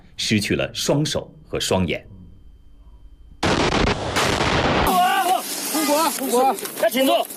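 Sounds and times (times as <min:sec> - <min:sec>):
speech: 0:00.2 - 0:02.1, 0:06.1 - 0:07.3
grenade explosion during mine clearing in minefield at Laoshan, Yunnan, China: 0:03.4 - 0:06.4
soldiers shouting frantically: 0:04.8 - 0:06.2.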